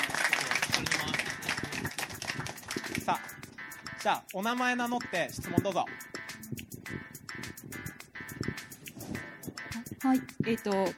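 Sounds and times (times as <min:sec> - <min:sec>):
audience applause: 0:00.0 - 0:03.1
speech: 0:04.0 - 0:06.0, 0:10.1 - 0:10.9.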